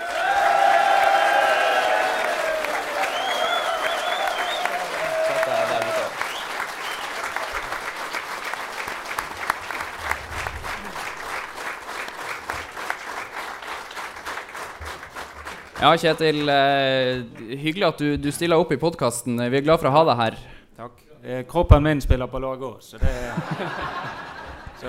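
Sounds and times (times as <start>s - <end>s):
audience applause: 0.0s - 17.5s
laughter: 4.9s - 6.1s, 23.0s - 24.8s
speech: 15.8s - 20.5s, 21.2s - 24.2s.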